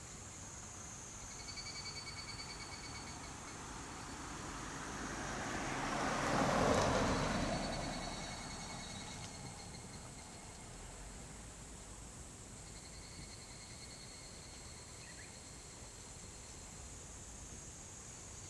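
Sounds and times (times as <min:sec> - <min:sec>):
higurashi cicada singing: 0:00.0 - 0:05.0, 0:05.8 - 0:18.4.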